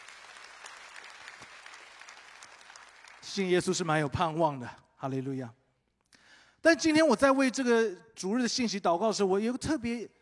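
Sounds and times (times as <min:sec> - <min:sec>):
people clapping: 0:00.0 - 0:03.9
speech: 0:03.3 - 0:05.6, 0:06.6 - 0:10.2.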